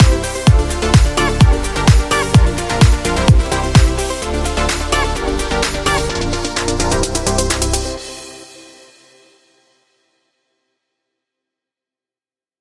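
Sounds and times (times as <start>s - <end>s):
pop party music: 0.0s - 8.6s.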